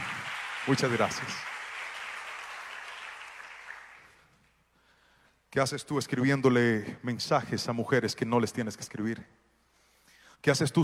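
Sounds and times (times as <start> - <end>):
audience applause: 0.0 - 4.2
speech: 0.7 - 1.6, 5.5 - 9.4, 10.4 - 10.8.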